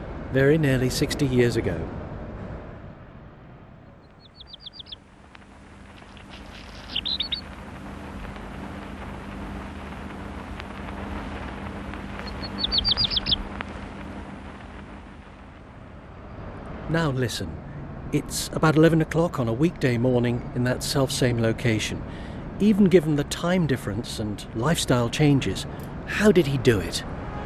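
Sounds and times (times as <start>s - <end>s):
speech: 0.3s - 2.0s, 16.9s - 27.1s
Black Redstart singing: 3.8s - 5.0s, 6.0s - 7.5s, 12.1s - 13.6s.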